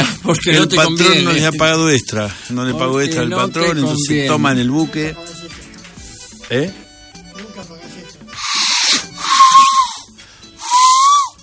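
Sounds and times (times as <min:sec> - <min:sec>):
speech: 0:00.3 - 0:05.3, 0:06.5 - 0:06.8
small train's steam whistle: 0:08.4 - 0:11.4.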